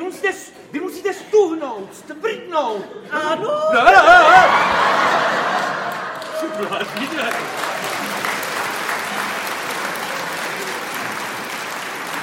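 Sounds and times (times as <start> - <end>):
speech: 1.8 - 4.6
audience laughter: 3.6 - 11.6
audience applause: 4.2 - 12.2.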